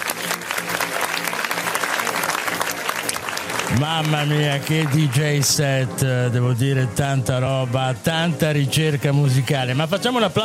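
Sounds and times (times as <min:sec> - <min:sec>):
audience applause: 0:00.0 - 0:05.9
speech: 0:03.7 - 0:10.4.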